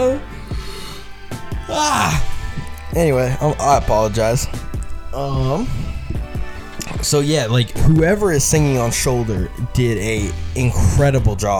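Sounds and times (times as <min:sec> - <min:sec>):
person yawning: 0:01.6 - 0:02.9
speech: 0:01.7 - 0:02.3, 0:02.9 - 0:04.6, 0:05.2 - 0:05.8, 0:07.1 - 0:11.5.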